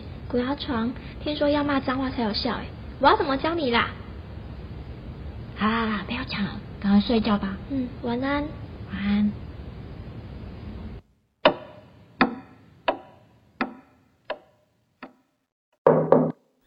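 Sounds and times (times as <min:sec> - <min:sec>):
speech: 0:00.3 - 0:04.0, 0:05.6 - 0:09.4
knocking on a door: 0:15.8 - 0:16.4.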